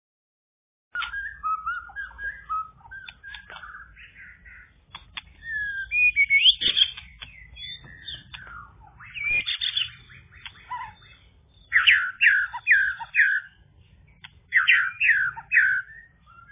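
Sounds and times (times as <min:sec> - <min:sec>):
bird singing whistled notes and chirping twitters: 0:00.9 - 0:16.4.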